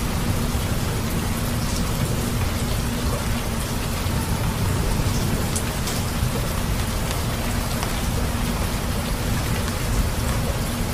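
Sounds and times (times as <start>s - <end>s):
rain hissing: 0.0s - 10.9s
deep rumble: 3.8s - 7.8s.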